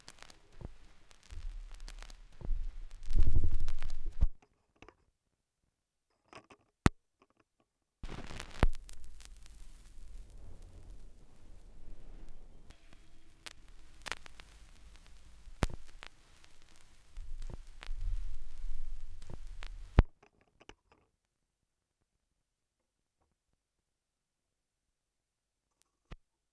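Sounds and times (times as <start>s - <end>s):
vinyl record noise: 0.0s - 4.4s, 8.0s - 20.1s.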